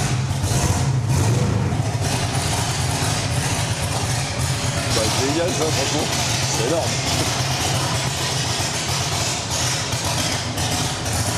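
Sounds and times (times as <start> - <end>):
air suspension raising a car: 0.0 - 11.3
speech: 5.4 - 7.4.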